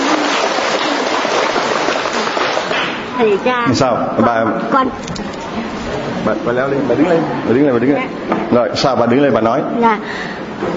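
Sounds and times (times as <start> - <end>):
audience applause: 0.0 - 3.1
speech: 3.2 - 10.7.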